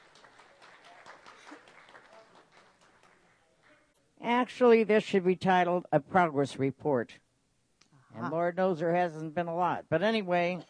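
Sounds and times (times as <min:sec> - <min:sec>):
audience applause: 0:00.0 - 0:03.5
speech: 0:04.2 - 0:07.2, 0:08.2 - 0:10.6.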